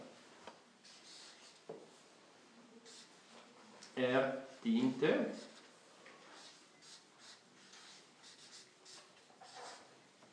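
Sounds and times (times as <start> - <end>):
speech: 4.0 - 5.5
handwriting scratching on paper: 6.4 - 9.9.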